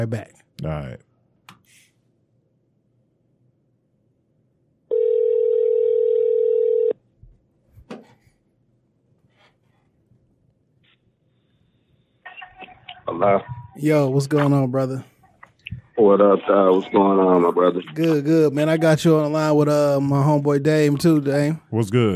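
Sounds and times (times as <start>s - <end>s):
speech: 0.0s - 1.1s, 13.1s - 15.1s, 16.0s - 22.1s
loud steady telephone tone: 4.9s - 7.0s.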